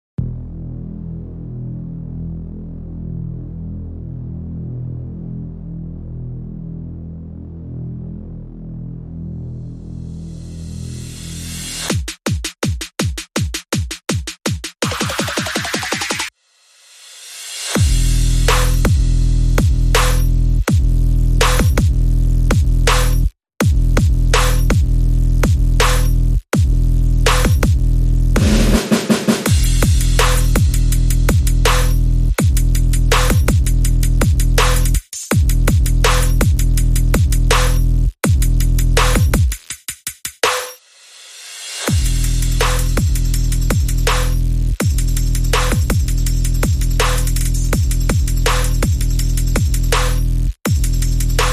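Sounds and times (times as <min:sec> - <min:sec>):
bass: 0:00.2 - 0:11.9, 0:17.8 - 0:39.6, 0:41.9 - 0:51.5
drums: 0:11.6 - 0:27.8, 0:28.4 - 0:51.5.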